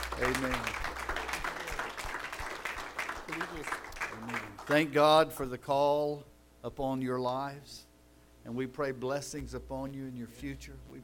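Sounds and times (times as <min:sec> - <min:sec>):
audience applause: 0:00.0 - 0:04.8
speech: 0:00.2 - 0:00.8, 0:04.7 - 0:11.0.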